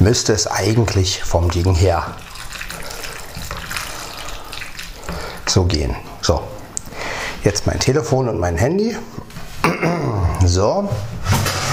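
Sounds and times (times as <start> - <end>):
speech: 0.0 - 2.2, 5.5 - 6.5, 7.4 - 9.1, 9.8 - 11.2
food sizzling while being stirred: 0.5 - 6.9.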